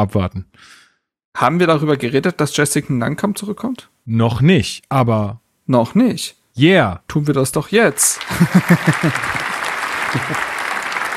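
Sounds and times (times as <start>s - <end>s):
speech: 0.0s - 0.8s, 1.4s - 9.5s, 10.1s - 10.5s
crowd applause: 8.0s - 11.1s
laughter: 8.2s - 11.1s.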